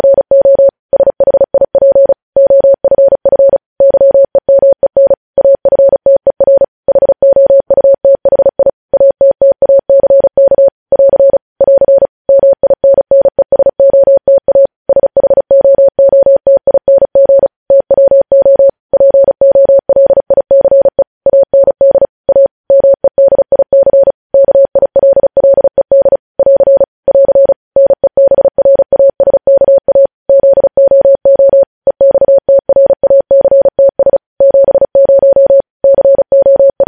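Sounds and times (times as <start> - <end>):
Morse code mid-pitched beeps: 0.0 - 36.8.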